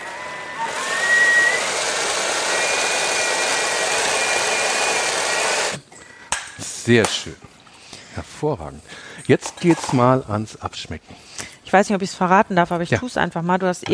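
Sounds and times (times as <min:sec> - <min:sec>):
blender mixing hummus: 0:00.0 - 0:05.8
speech: 0:06.9 - 0:07.5, 0:08.2 - 0:13.9.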